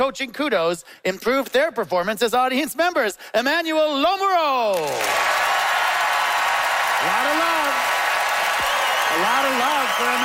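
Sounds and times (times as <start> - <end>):
speech: 0.0 - 5.4, 7.0 - 7.9, 9.1 - 10.2
crowd applauding: 4.8 - 10.2
rising whoop of a cheer: 4.9 - 10.2.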